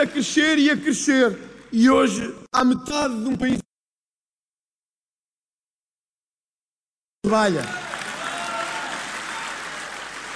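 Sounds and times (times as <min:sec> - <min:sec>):
speech: 0:00.0 - 0:03.7, 0:07.3 - 0:07.9
audience applause: 0:07.5 - 0:10.3.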